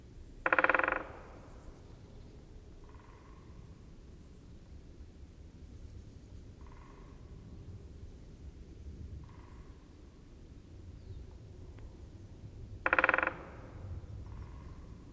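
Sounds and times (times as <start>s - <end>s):
great spotted woodpecker calling: 0.4s - 3.8s, 6.6s - 7.3s, 12.8s - 15.0s.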